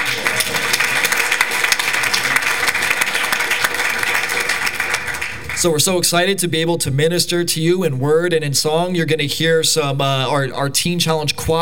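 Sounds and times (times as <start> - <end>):
audience applause: 0.0 - 5.6
speech: 5.6 - 11.6.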